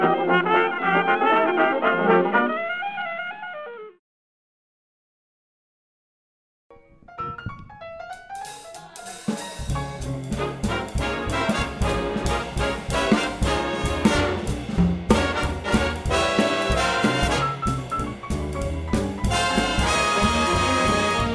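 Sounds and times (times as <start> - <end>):
jazz instruments playing: 0.0 - 3.4, 8.2 - 21.3.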